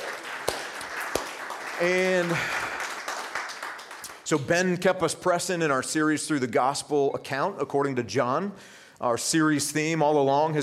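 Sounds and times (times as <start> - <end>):
audience applause: 0.0 - 4.4
speech: 1.8 - 2.7, 4.3 - 10.6.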